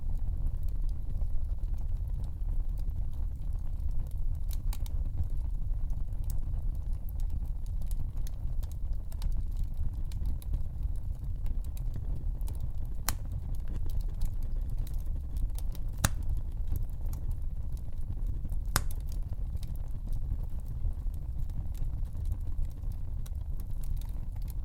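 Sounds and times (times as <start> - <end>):
fire burning in a stove: 0.0 - 24.6.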